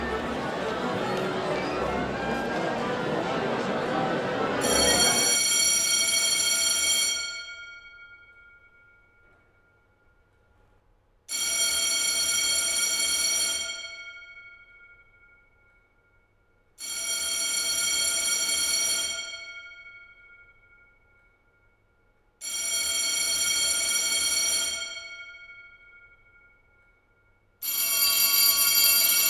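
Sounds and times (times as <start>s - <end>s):
laughter: 0.0s - 5.4s
alarm clock bell ringing: 4.6s - 9.2s, 11.3s - 15.6s, 16.8s - 21.1s, 22.4s - 26.7s, 27.6s - 29.2s.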